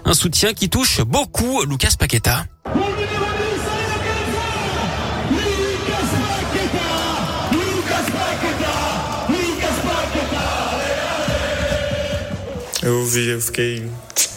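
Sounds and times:
speech: 0.1 - 2.9, 12.8 - 14.3
crowd cheering: 2.6 - 14.3
large crowd of football fans singing a chant: 2.8 - 12.8.

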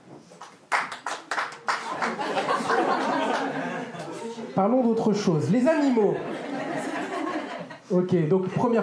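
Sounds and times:
audience clapping: 0.3 - 4.2
laughter: 1.8 - 4.5, 5.9 - 7.9
speech: 4.6 - 6.5, 7.9 - 8.8.

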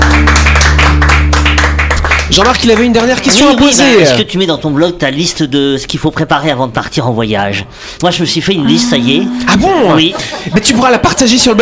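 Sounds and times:
audience clapping: 0.0 - 4.2
speech: 2.3 - 11.6
laughter: 9.4 - 11.0.

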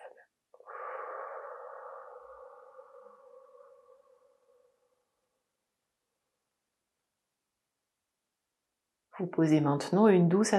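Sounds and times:
slow breath out during a sophrology relaxation exercise: 0.6 - 5.4
speech: 9.2 - 10.5.

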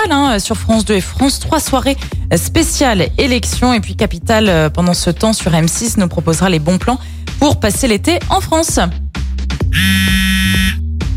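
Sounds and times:
speech: 0.0 - 9.0, 9.8 - 10.0
mobile phone ringing: 9.8 - 10.8.

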